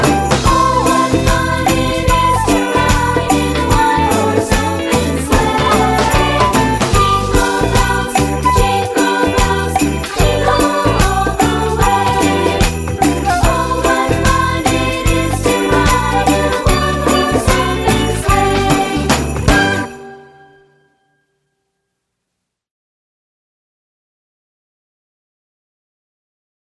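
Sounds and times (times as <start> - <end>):
song: 0.0 - 21.1.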